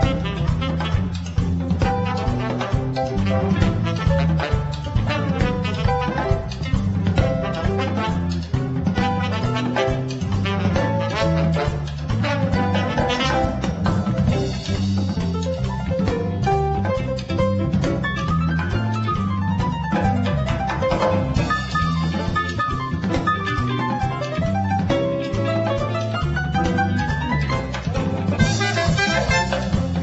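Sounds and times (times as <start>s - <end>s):
merengue music: 0.0s - 30.0s.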